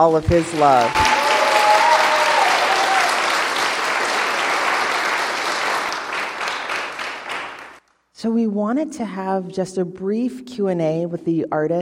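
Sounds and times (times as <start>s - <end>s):
speech: 0.0s - 1.0s, 8.2s - 11.8s
audience applause: 0.2s - 7.8s.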